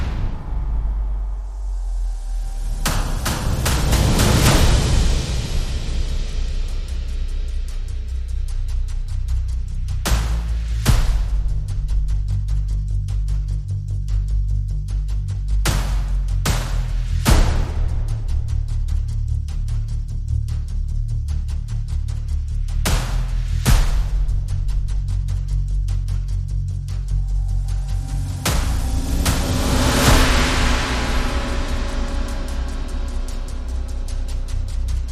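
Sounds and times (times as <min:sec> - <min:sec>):
bass: 0:00.0 - 0:35.1
drums: 0:00.0 - 0:35.1.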